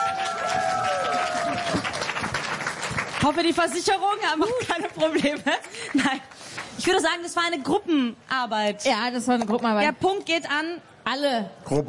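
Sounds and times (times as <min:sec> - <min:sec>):
applause: 0:00.0 - 0:07.3
speech: 0:03.2 - 0:11.8.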